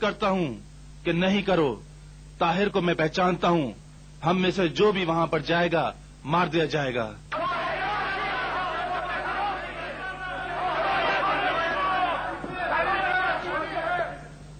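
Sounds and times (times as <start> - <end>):
speech: 0.0 - 7.3
crowd commotion and chatter: 7.3 - 14.4.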